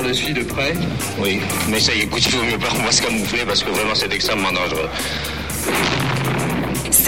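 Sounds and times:
speech: 0.1 - 7.0
bullets striking during the 1956 Soviet tank assault on Budapest: 5.6 - 7.0.

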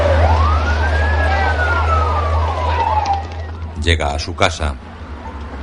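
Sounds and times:
police car siren wailing at night outside a church: 0.0 - 3.9
speech: 3.9 - 4.9.

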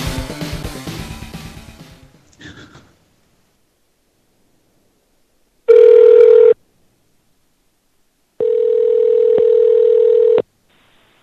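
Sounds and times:
telephone dial tone after the caller hung up: 5.7 - 6.6, 8.4 - 10.4.

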